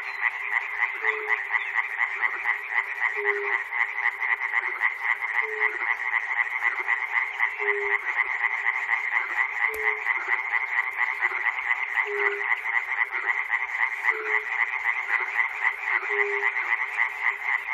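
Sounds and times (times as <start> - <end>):
frog chorus at Chernobyl: 0.0 - 17.7.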